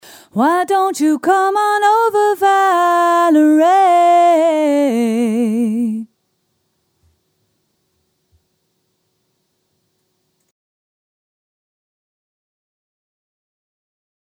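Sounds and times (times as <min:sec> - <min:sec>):
soprano singing: 0:00.1 - 0:06.1.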